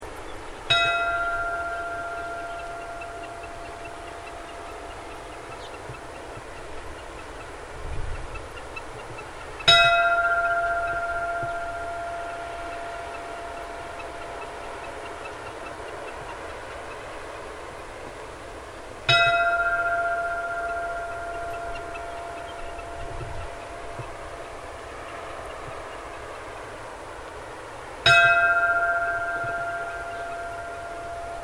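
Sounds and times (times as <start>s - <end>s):
Gilsbakki church bells tolling for a funeral: 0.7s - 7.2s, 9.6s - 16.5s, 19.1s - 26.1s, 28.0s - 31.4s.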